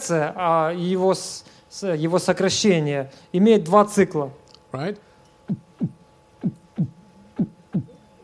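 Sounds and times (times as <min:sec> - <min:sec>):
faint steady hum: 0:00.0 - 0:08.2
speech: 0:00.1 - 0:07.5
heartbeat: 0:05.5 - 0:08.0.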